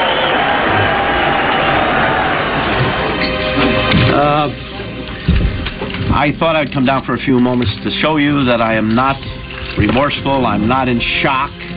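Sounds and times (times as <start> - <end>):
fans applauding the decision: 0.0 - 4.6
speech: 6.2 - 11.7.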